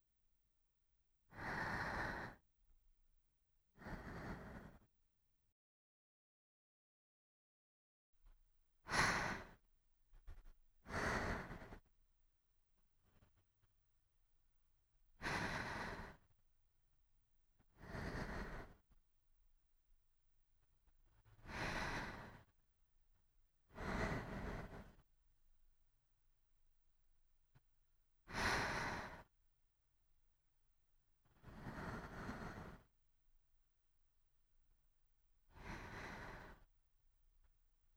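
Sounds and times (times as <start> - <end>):
sleeping breath: 1.3 - 2.4, 3.8 - 4.9, 8.9 - 9.6, 10.3 - 11.9, 15.2 - 16.3, 17.6 - 18.9, 21.2 - 22.6, 23.7 - 25.0, 28.3 - 29.3, 31.3 - 32.9, 35.5 - 36.7.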